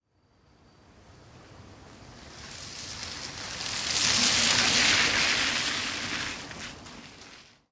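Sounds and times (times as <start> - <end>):
car passing by at medium speed: 1.6 - 7.6.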